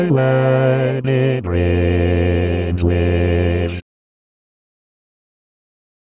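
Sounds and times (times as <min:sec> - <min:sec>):
bass: 0:00.1 - 0:03.8.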